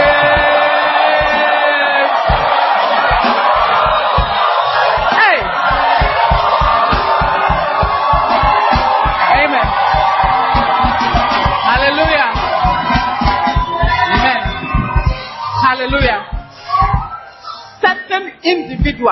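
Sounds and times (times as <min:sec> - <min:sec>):
church congregation clapping: 0:00.0 - 0:15.0
church congregation shouting praise and whooping: 0:00.0 - 0:17.7.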